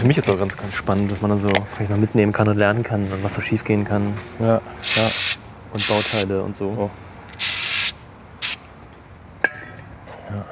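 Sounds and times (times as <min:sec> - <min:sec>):
speech: 0:00.0 - 0:07.1
brake cleaner spray being sprayed: 0:04.8 - 0:06.3, 0:07.3 - 0:08.6.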